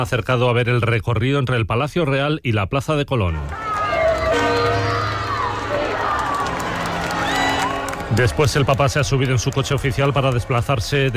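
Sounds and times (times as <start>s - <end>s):
speech: 0.0s - 3.6s, 4.3s - 4.8s, 8.1s - 11.1s
crowd cheering: 3.3s - 11.1s
crowd chanting: 3.5s - 8.3s.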